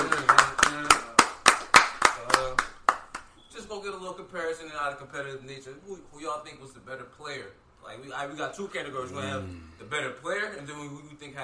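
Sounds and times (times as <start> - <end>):
hand clapping: 0.0 - 3.4
speech: 4.3 - 11.4
voices talking or murmuring: 9.0 - 9.8.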